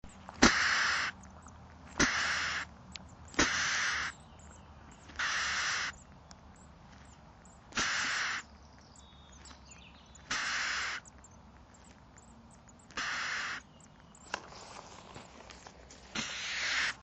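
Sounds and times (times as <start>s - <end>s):
Poecile palustris calling: 0.0s - 15.4s, 16.1s - 17.0s.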